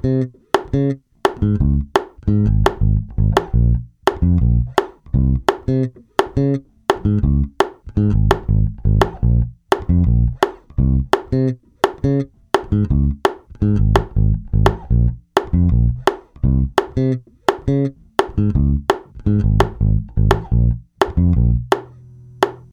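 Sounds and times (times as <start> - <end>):
offbeat bass metronome: 0.0 - 22.7.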